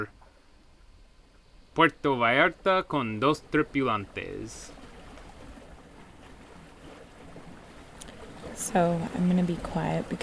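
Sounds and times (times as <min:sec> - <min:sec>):
speech: 0:01.8 - 0:04.8, 0:08.6 - 0:10.2
rush of water and wind from a 13-metre Sedna sailboat under way at sea: 0:01.8 - 0:10.2.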